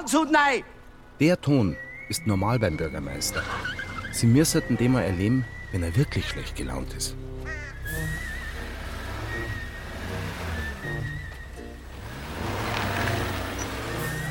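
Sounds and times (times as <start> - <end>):
speech: 0.1 - 7.6
cars honking in a traffic queue: 1.8 - 14.2.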